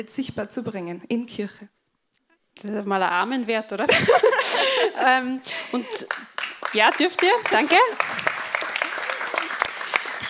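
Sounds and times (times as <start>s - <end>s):
speech: 0.0s - 1.8s, 2.6s - 8.1s
congregation clapping during a church service: 5.9s - 10.2s.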